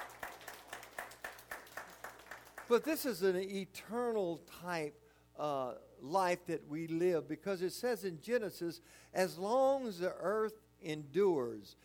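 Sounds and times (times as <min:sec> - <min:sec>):
rhythmic clapping from a church congregation: 0:00.0 - 0:03.1
speech: 0:02.7 - 0:11.8.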